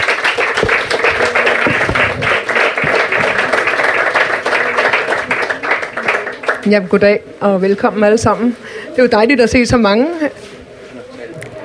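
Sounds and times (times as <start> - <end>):
audience applause at a public debate meeting on international conflict resolution: 0.0 - 6.8
speech: 6.6 - 10.4.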